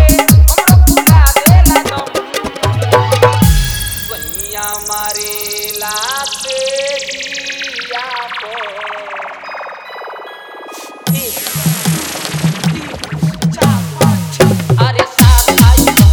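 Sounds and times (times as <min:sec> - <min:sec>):
old Bhojpuri dholak with hard bass mix: 0:00.0 - 0:05.6, 0:11.1 - 0:16.1.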